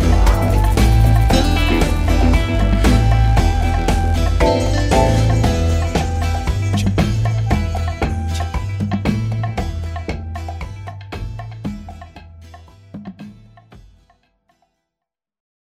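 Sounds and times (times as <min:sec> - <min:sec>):
electro music: 0:00.0 - 0:12.1.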